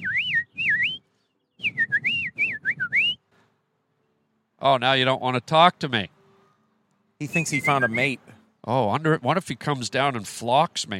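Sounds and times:
person whistling a warbling bird call: 0:00.0 - 0:03.2, 0:07.2 - 0:08.2
speech: 0:04.6 - 0:06.2, 0:07.2 - 0:10.9.

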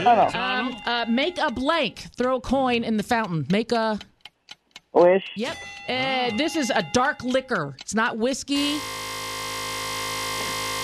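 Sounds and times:
speech: 0:00.0 - 0:04.1, 0:04.9 - 0:09.0
game show buzzer: 0:08.6 - 0:10.8.

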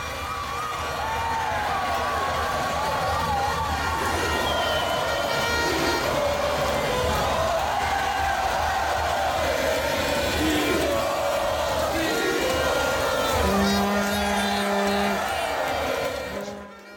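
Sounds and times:
crowd voices and shouting at busy roundabout: 0:00.0 - 0:16.9
car horns: 0:03.9 - 0:06.4, 0:11.9 - 0:16.9.

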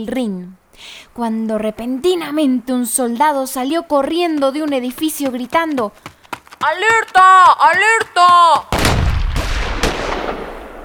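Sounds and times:
speech: 0:00.0 - 0:08.9
rifle volley gunfire: 0:06.0 - 0:10.8.

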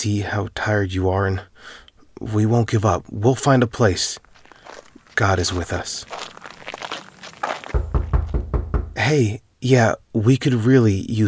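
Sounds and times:
speech: 0:00.0 - 0:06.4, 0:09.0 - 0:11.2
soft crinkling and shuffling: 0:02.7 - 0:09.0
knocking on a door: 0:07.7 - 0:09.0.

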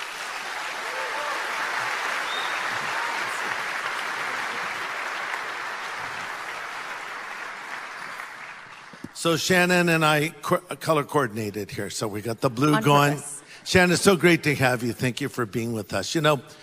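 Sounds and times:
audience applause at a Harvest event: 0:00.0 - 0:09.2
speech: 0:09.2 - 0:16.6.

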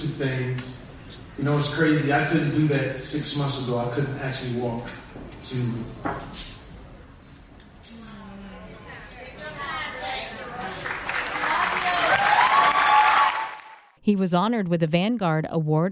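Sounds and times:
speech: 0:00.2 - 0:00.8, 0:01.4 - 0:06.6, 0:14.1 - 0:15.8
audience applauding and cheering an honoree at an awards ceremony: 0:10.6 - 0:14.0.

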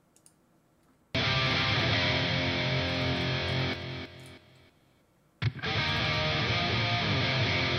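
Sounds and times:
distorted crunch electric guitar: 0:01.2 - 0:04.7, 0:05.4 - 0:07.7.

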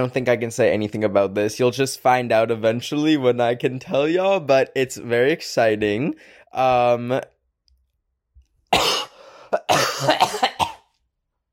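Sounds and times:
speech: 0:00.0 - 0:07.3, 0:09.6 - 0:10.5
cough: 0:08.7 - 0:11.0.

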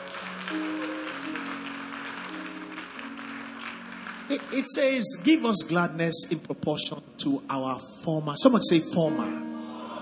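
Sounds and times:
audience clapping: 0:00.0 - 0:05.8
speech: 0:04.3 - 0:09.4.

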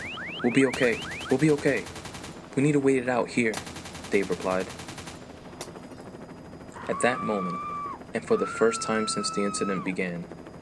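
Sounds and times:
helicopter machine gun fire: 0:00.0 - 0:05.8
speech: 0:00.4 - 0:02.0, 0:02.6 - 0:04.8, 0:06.9 - 0:10.4.

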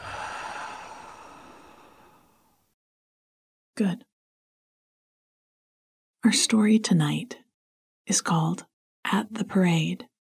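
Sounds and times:
slow deep exhale during a guided relaxation exercise: 0:00.0 - 0:02.6
speech: 0:03.8 - 0:04.1, 0:06.2 - 0:07.4, 0:08.1 - 0:10.1.

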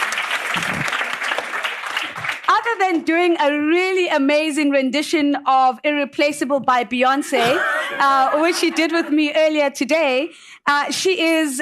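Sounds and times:
audience applause: 0:00.0 - 0:02.5
speech: 0:02.7 - 0:11.5
laughter: 0:07.4 - 0:09.3.

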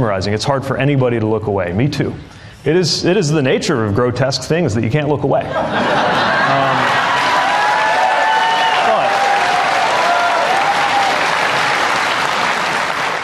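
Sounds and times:
speech: 0:00.0 - 0:06.8
laughter: 0:05.4 - 0:07.6
large audience applause: 0:06.3 - 0:13.2
scattered cheers and whoops: 0:06.5 - 0:12.3.

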